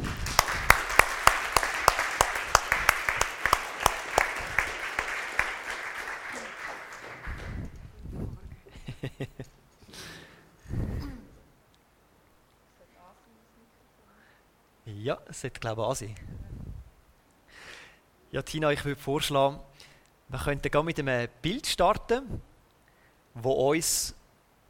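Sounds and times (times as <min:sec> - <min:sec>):
crowd clapping: 0:00.0 - 0:07.9
voices and breaths: 0:09.8 - 0:11.4, 0:14.0 - 0:14.6, 0:16.2 - 0:16.9, 0:17.5 - 0:18.1, 0:19.7 - 0:20.2, 0:22.3 - 0:23.3
speech: 0:15.4 - 0:16.3, 0:18.4 - 0:19.7, 0:20.3 - 0:22.5, 0:23.4 - 0:24.2.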